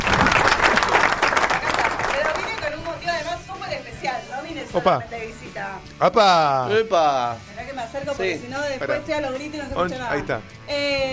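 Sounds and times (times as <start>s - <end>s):
applause: 0.0s - 3.0s
speech: 4.8s - 11.1s.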